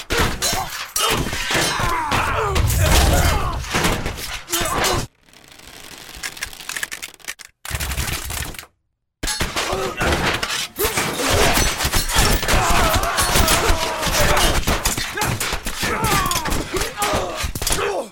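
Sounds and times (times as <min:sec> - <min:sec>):
battle sounds: 0:00.2 - 0:05.2, 0:09.4 - 0:18.1.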